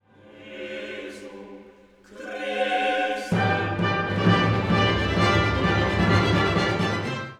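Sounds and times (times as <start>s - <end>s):
fanfare: 3.3s - 7.3s.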